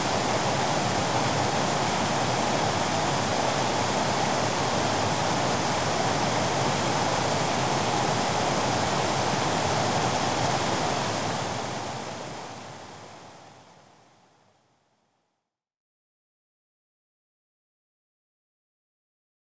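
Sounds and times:
waterfall: 0.0s - 14.4s.

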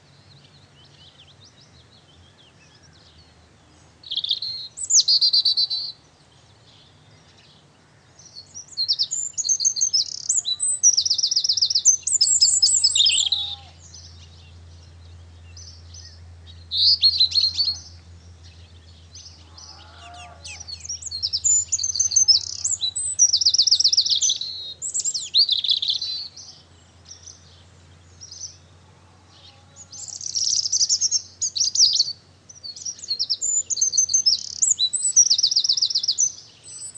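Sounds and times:
rural farmstead ambience on a late spring early morning: 0.0s - 36.9s.

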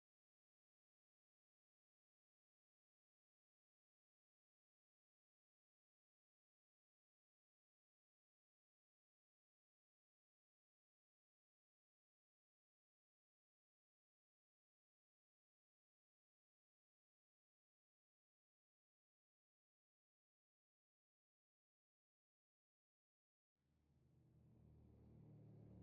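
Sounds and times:
Textron WildCat X off-road vehicle accelerating by, exterior: 24.2s - 25.8s.

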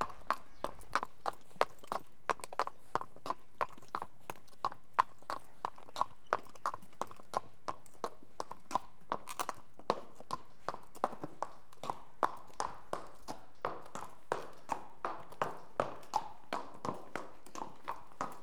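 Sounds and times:
horse walking on cobblestones: 0.0s - 18.4s.

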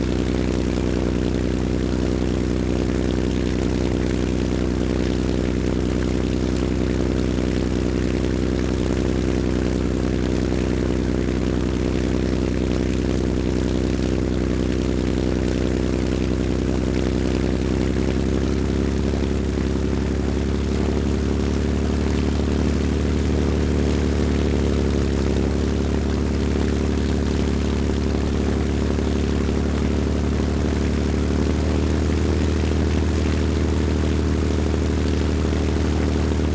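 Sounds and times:
stationary Messerschmitt Bf109 G4 engine startup idle and shutdown: 0.0s - 36.5s.

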